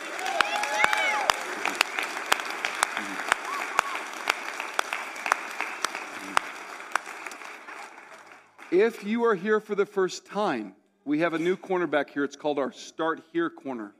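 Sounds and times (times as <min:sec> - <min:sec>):
audience applause: 0:00.0 - 0:09.4
speech: 0:08.8 - 0:13.9.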